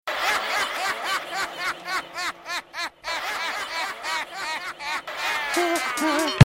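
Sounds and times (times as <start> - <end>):
echo: 0.1 - 5.9
laughter: 0.1 - 6.4.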